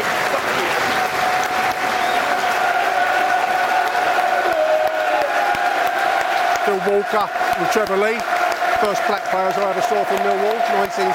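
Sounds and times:
stadium crowd applauding: 0.0s - 11.1s
speech: 6.8s - 11.1s.

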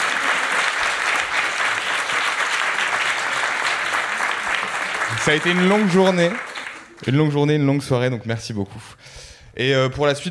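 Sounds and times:
audience applause: 0.0s - 7.3s
speech: 5.2s - 10.2s.

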